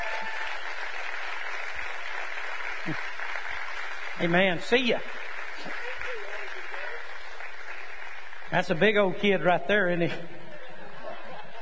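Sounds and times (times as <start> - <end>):
audience round of applause: 0.0 - 9.6
speech: 2.9 - 3.2, 4.2 - 5.9, 8.5 - 10.4
laughter: 10.1 - 11.6.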